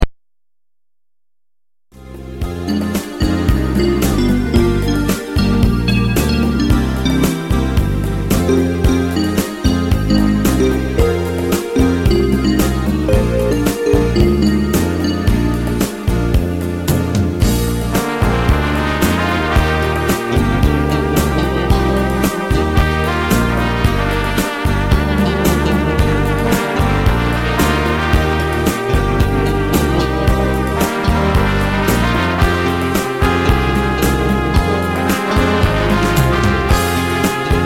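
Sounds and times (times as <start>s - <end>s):
Brazilian rumba music: 2.2s - 37.6s.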